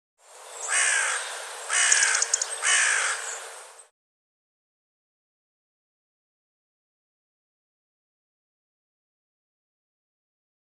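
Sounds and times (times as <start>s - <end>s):
bird cawing: 0.6s - 3.5s.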